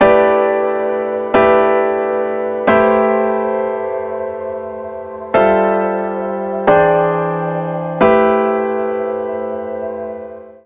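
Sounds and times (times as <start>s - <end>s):
soulful chords in C major at 90 bpm: 0.0s - 10.6s.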